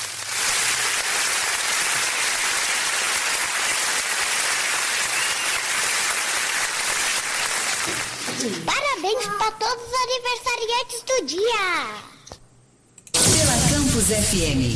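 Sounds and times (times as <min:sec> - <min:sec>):
crowd applauding: 0:00.0 - 0:08.7
speech: 0:08.4 - 0:12.1, 0:14.0 - 0:14.7.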